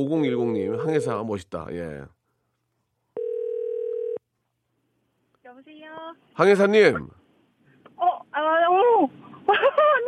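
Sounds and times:
speech: 0:00.0 - 0:02.2, 0:05.6 - 0:07.2, 0:08.4 - 0:10.0
dial tone: 0:03.2 - 0:04.2
telephone call connecting: 0:03.2 - 0:04.2
laughter: 0:09.4 - 0:10.0.

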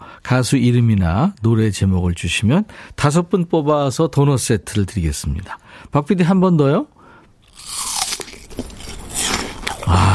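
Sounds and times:
speech: 0:00.3 - 0:07.0
crunchy apple chewing: 0:07.4 - 0:10.1.

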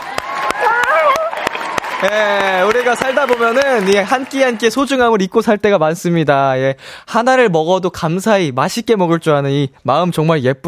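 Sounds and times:
hand claps: 0:00.0 - 0:04.7
speech: 0:02.0 - 0:10.6.

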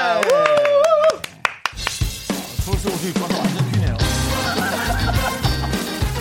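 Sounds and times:
audience applause: 0:00.0 - 0:02.0, 0:04.4 - 0:05.9
speech: 0:03.0 - 0:03.4
laughter: 0:04.2 - 0:06.1.

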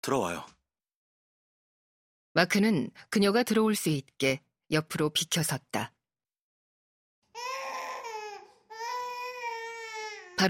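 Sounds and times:
speech: 0:00.0 - 0:00.6, 0:02.4 - 0:06.0
baby crying piercingly: 0:07.3 - 0:10.4.

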